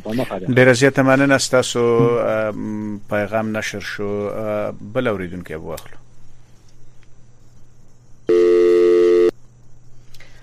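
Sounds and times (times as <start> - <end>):
speech: 0.0 - 6.0
quiet hiss: 0.0 - 10.4
telephone line tone while a radio call-in connects: 8.3 - 9.4.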